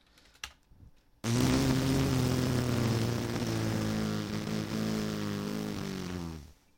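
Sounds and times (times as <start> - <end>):
nose blowing slowed down: 1.2 - 6.6.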